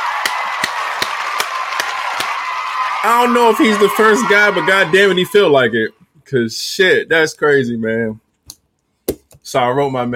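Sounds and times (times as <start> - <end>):
round of applause: 0.0 - 5.4
speech: 3.0 - 8.2, 9.5 - 10.1.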